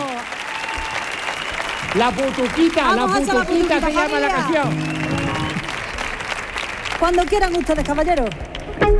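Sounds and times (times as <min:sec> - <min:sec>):
crowd applauding: 0:00.0 - 0:08.9
speech: 0:02.0 - 0:05.2, 0:07.0 - 0:08.9.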